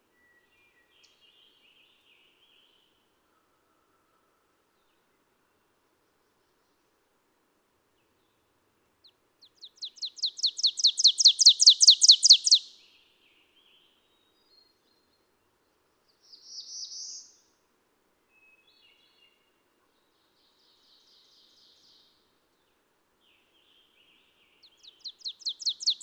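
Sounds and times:
ovenbird song: 0.0 - 3.0, 9.0 - 15.4, 16.1 - 17.6, 18.3 - 26.0.

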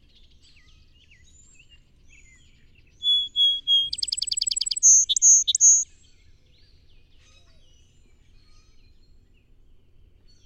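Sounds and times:
song sparrow singing: 0.2 - 5.9.

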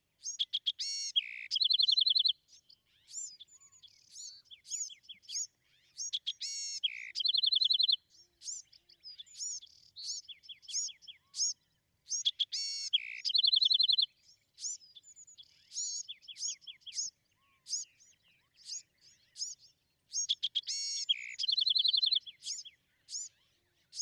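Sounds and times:
Bewick's wren song: 0.2 - 23.9.

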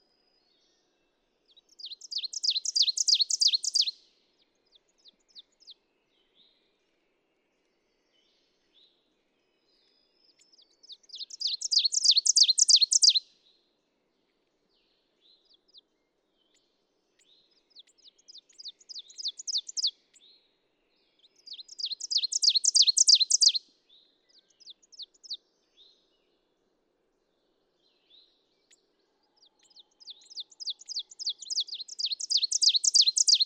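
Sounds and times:
ovenbird singing: 1.5 - 4.0, 10.3 - 13.2, 17.2 - 20.2, 21.2 - 23.6, 29.4 - 33.4.

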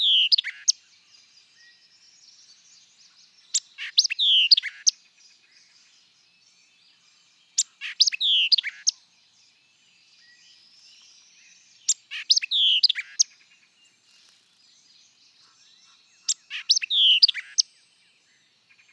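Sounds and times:
white-eyed vireo song of sharp chips and slurred whistles: 3.4 - 5.0, 7.6 - 9.0, 10.2 - 13.3, 14.0 - 17.8.

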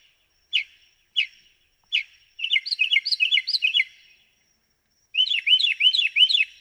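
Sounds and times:
Northern Mockingbird singing: 0.5 - 4.1, 5.2 - 6.5.

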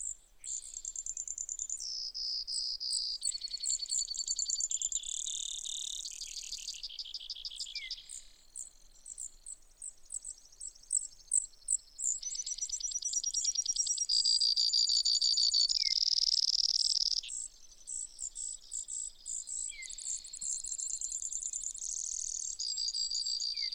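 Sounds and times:
Brewer's sparrow singing: 0.0 - 23.7.

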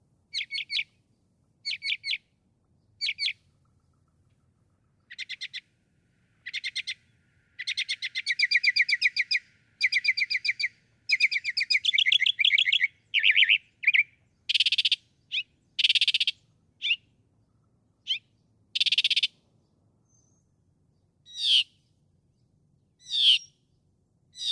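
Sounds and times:
Northern mockingbird song: 0.3 - 24.5.

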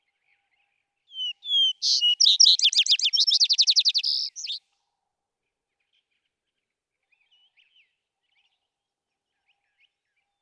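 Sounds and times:
vesper sparrow singing: 1.1 - 4.6.

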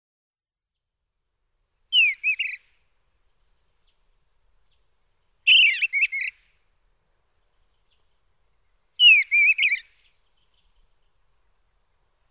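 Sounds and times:
Eastern bluebird singing warbling phrases of slurred whistles and burry notes: 1.9 - 2.6, 5.5 - 6.4, 9.0 - 10.8.

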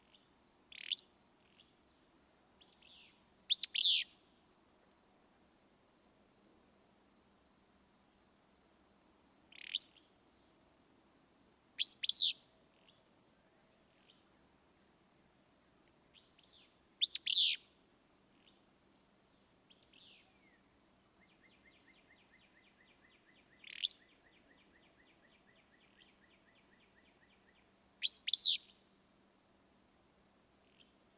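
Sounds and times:
Willow Flycatcher calling: 0.7 - 1.1, 2.6 - 4.2, 11.8 - 12.4, 16.2 - 17.7, 21.4 - 28.8.

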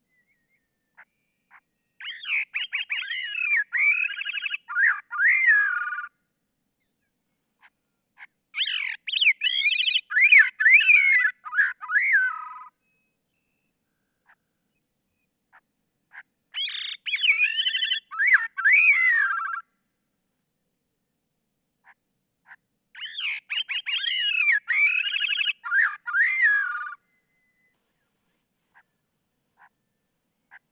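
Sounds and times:
Gray-cheeked Thrush calling: 2.0 - 6.1, 7.6 - 12.7, 15.5 - 19.6, 21.8 - 27.0.

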